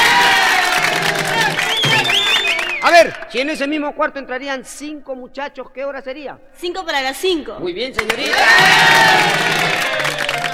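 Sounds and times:
live comedy-show audience cheering and whooping: 0.0s - 3.4s, 8.0s - 10.5s
speech: 3.0s - 9.9s.

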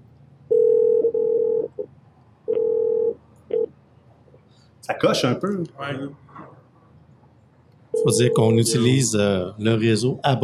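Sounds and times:
telephone call ringing: 0.5s - 1.8s, 2.5s - 3.7s, 8.0s - 9.0s
speech: 4.8s - 6.2s, 8.0s - 10.4s.

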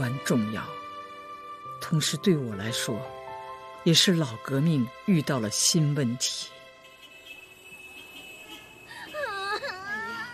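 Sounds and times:
speech: 0.1s - 0.8s, 1.9s - 3.2s, 3.8s - 6.6s
child crying and whimpering: 9.2s - 10.3s.

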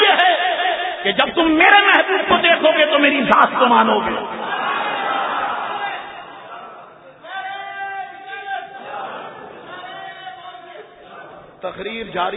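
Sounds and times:
speech: 1.0s - 4.4s, 11.7s - 12.3s
crowd chanting a religious slogan at a Friday sermon: 4.4s - 7.2s, 8.4s - 10.1s.

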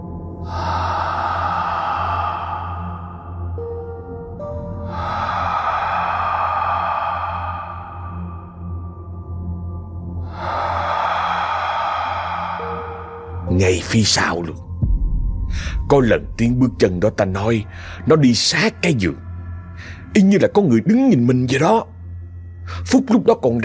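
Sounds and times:
eerie slow heavy rasping breathing: 0.4s - 3.6s, 4.7s - 9.2s, 10.2s - 13.5s, 15.4s - 15.9s, 17.6s - 18.1s
speech: 13.6s - 14.7s, 15.5s - 19.3s, 20.2s - 21.9s, 22.9s - 23.6s.

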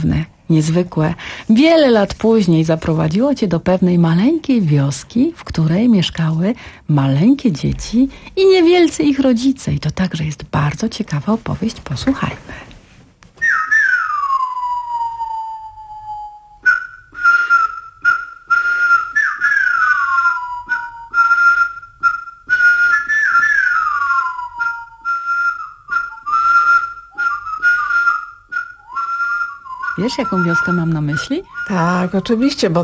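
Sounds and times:
speech: 0.0s - 12.7s, 30.1s - 32.8s
people whistling imitating bird calls: 13.4s - 32.8s.

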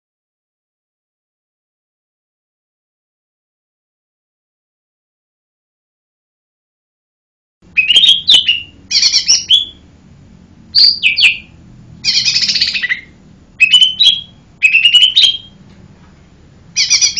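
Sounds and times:
bird singing lively high chirped phrases: 7.7s - 9.8s, 10.7s - 15.6s, 16.8s - 17.1s.

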